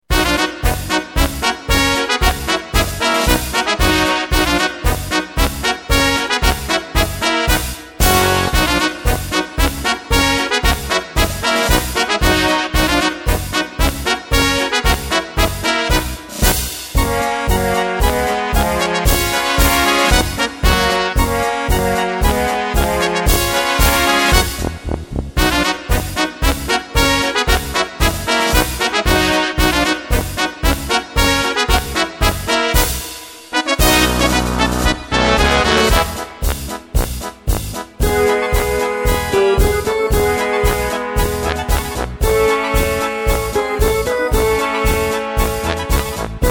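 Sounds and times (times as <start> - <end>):
polka music: 0.0 - 46.4.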